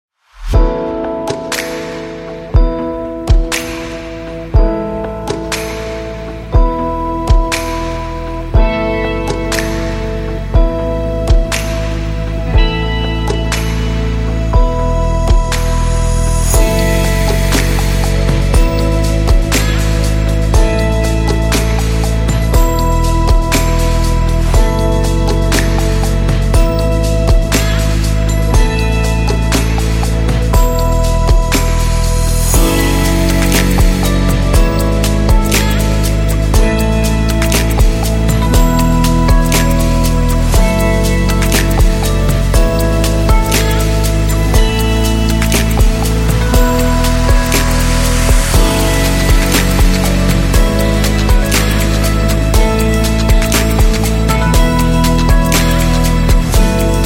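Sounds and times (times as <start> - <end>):
calm abstract ambient music: 0.3 - 57.0.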